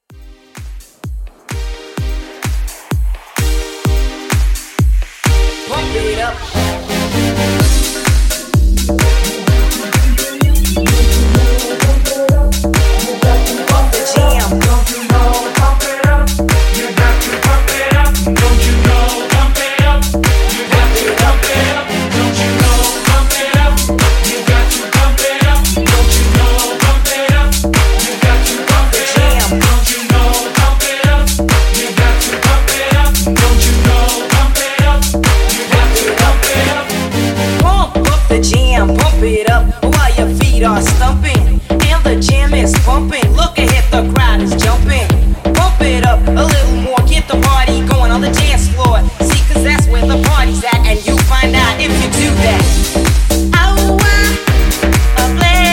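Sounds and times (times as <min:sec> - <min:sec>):
house music mix: 0:00.0 - 0:55.7.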